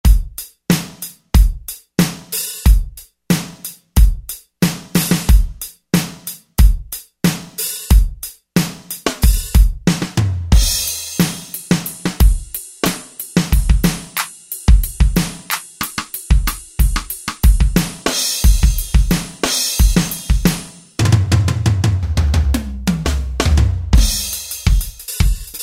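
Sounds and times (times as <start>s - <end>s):
drums: 0.0s - 25.6s.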